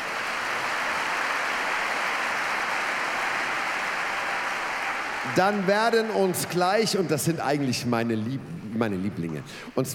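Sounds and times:
audience applause: 0:00.0 - 0:07.1
speech: 0:05.3 - 0:09.9.

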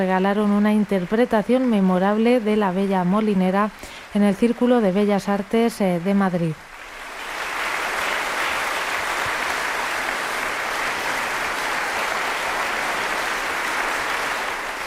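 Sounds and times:
speech: 0:00.0 - 0:06.7
audience applause in a concert hall: 0:06.6 - 0:14.8.

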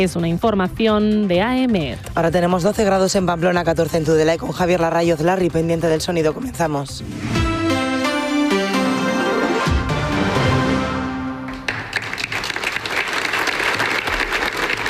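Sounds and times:
speech: 0:00.0 - 0:07.4
tonal music: 0:05.0 - 0:11.9
applause from a rally crowd at a public rally: 0:11.5 - 0:14.8.

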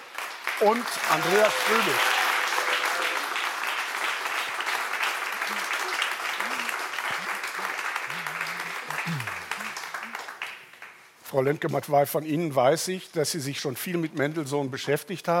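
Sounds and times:
audience applause: 0:00.0 - 0:11.0
speech: 0:00.6 - 0:02.2, 0:11.3 - 0:15.3.

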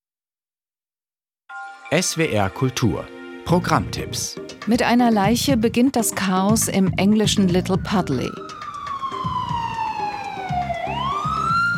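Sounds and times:
speech: 0:01.5 - 0:08.6
ambulance siren: 0:07.2 - 0:11.7.

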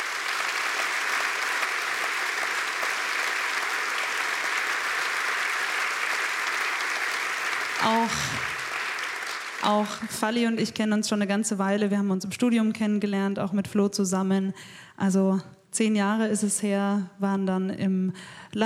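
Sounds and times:
audience applause: 0:00.0 - 0:10.1
speech: 0:08.0 - 0:08.4, 0:09.6 - 0:18.6.

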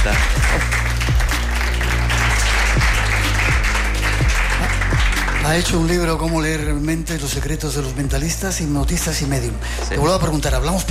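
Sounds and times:
studio audience applause: 0:00.0 - 0:06.3
speech: 0:05.5 - 0:10.8.

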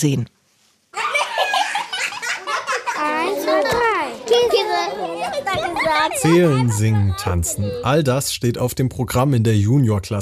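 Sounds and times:
speech: 0:00.0 - 0:00.4, 0:03.6 - 0:10.2
children shouting, chattering and laughing: 0:00.9 - 0:08.0.

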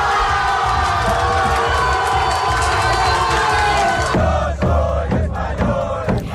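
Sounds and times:
large crowd cheering Spain's football victory: 0:00.0 - 0:06.3.

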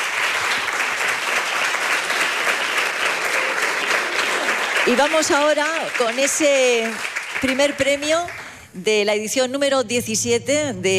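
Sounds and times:
audience applause: 0:00.0 - 0:08.6
speech: 0:04.9 - 0:10.9.

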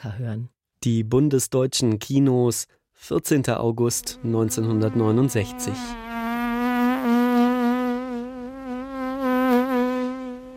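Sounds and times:
speech: 0:00.0 - 0:06.2
fly buzzing: 0:04.0 - 0:10.5.

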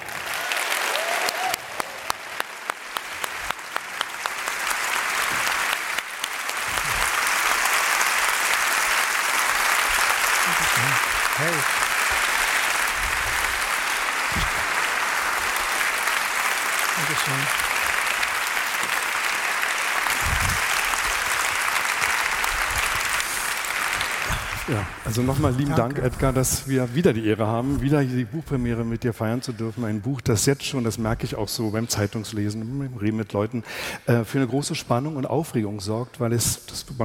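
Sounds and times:
audience applause welcoming an author to a book premiere: 0:00.0 - 0:27.1
speech: 0:24.7 - 0:37.0.

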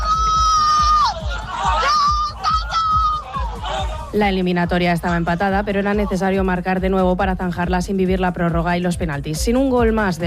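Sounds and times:
football fans cheering after a goal: 0:00.0 - 0:06.6
speech: 0:04.2 - 0:10.2.

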